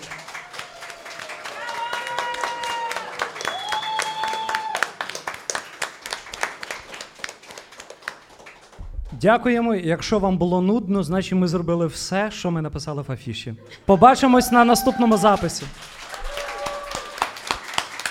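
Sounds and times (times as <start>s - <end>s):
crowd applause: 0.0s - 8.8s, 14.0s - 18.1s
high whistles or whoops: 0.8s - 4.9s, 16.1s - 17.3s
speech: 9.2s - 16.0s.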